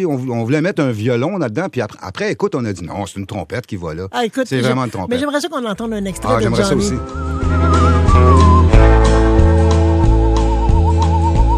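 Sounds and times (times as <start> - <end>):
speech: 0.0 - 8.4
person whistling a melody: 6.4 - 11.5.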